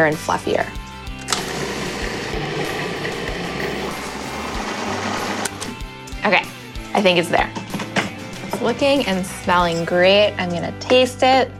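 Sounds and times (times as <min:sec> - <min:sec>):
speech: 0:00.0 - 0:00.8, 0:06.2 - 0:07.7, 0:08.6 - 0:11.5
blender blending hummus: 0:01.3 - 0:05.8.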